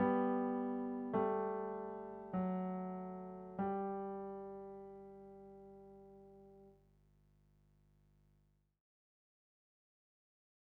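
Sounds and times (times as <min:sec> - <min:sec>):
piano: 0:00.0 - 0:06.7.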